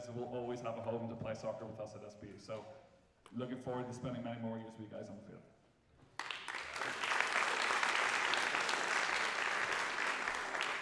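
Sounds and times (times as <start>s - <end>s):
speech: 0.1s - 5.5s
audience applause: 6.2s - 10.8s.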